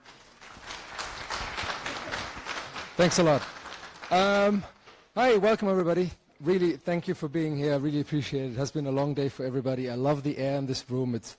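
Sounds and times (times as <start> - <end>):
applause: 0.0 - 5.4
speech: 3.0 - 11.3.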